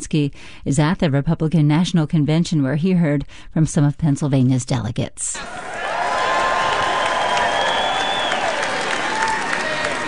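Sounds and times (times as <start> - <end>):
speech: 0.1 - 5.8
large convention crowd applauding and cheering: 5.4 - 10.0
sliding whoops: 5.4 - 10.0
shrill whistles: 6.1 - 10.0.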